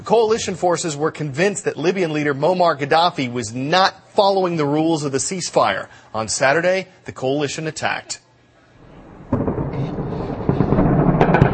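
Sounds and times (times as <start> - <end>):
speech: 0.1 - 8.2
gunfire in the capital city of Tripoli: 9.1 - 11.5.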